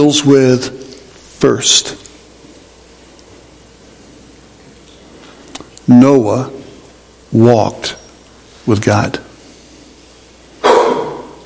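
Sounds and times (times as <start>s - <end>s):
speech: 0.0s - 0.8s, 1.4s - 2.0s, 5.9s - 6.6s, 7.3s - 8.0s, 8.7s - 9.3s
person sneezing: 10.6s - 11.4s.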